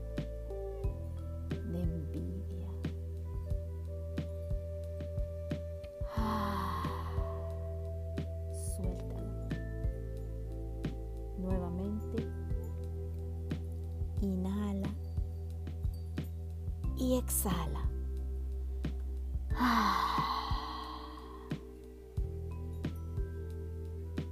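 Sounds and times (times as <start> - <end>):
low droning musical tone: 0.0 - 24.3
deep breathing during a guided meditation: 6.1 - 7.7, 19.5 - 21.8.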